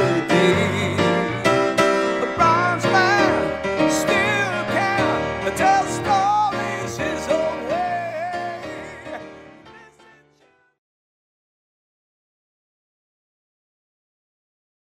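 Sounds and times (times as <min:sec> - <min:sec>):
solo piano: 0:00.0 - 0:10.7.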